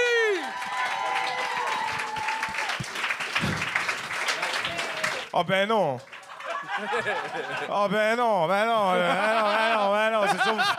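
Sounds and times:
cheers: 0.0s - 5.3s
audience applause: 0.0s - 7.7s
speech: 5.4s - 6.1s, 6.8s - 10.7s
laughter: 6.2s - 8.1s, 8.7s - 10.7s.

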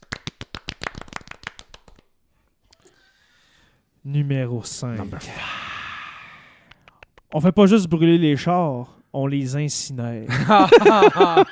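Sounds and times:
audience clapping in an ovation: 0.0s - 2.1s
speech: 4.0s - 5.6s, 7.3s - 11.4s
laughter: 10.3s - 11.4s.

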